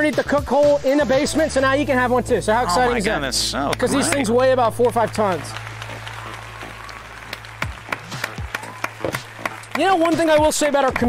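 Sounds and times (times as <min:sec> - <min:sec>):
speech: 0:00.0 - 0:05.7, 0:09.8 - 0:11.0
low constant hum: 0:01.3 - 0:08.0
audience clapping: 0:03.7 - 0:11.0.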